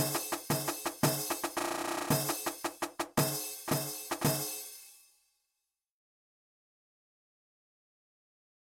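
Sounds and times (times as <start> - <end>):
rhythm: 0.0 - 5.0.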